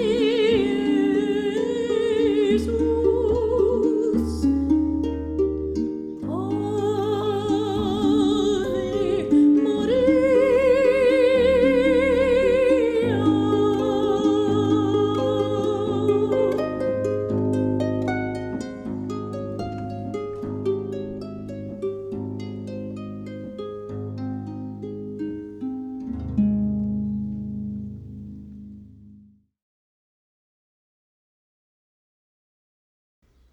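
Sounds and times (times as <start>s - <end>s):
person singing: 0.0s - 21.5s
harp: 0.0s - 29.3s.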